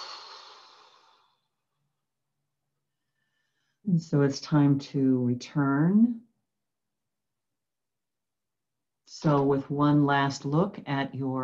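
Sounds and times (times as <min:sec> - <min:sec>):
slow deep exhale during a guided relaxation: 0:00.0 - 0:01.5
speech: 0:03.9 - 0:06.3, 0:09.2 - 0:11.4.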